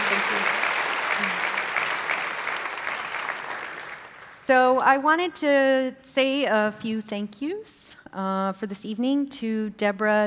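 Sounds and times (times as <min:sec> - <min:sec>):
theatre audience applause: 0:00.0 - 0:04.4
speech: 0:04.5 - 0:10.2.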